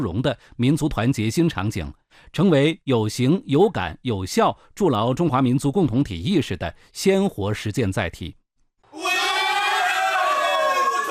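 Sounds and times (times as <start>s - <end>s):
speech: 0.0s - 9.2s
football crowd cheering at a Yunnan league match: 8.9s - 11.0s
supporters shouting in the Yi language: 8.9s - 11.0s.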